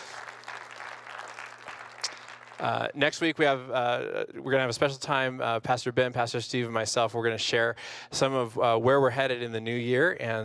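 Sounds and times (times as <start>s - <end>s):
audience applauding: 0.0s - 3.0s
speech: 2.6s - 10.4s.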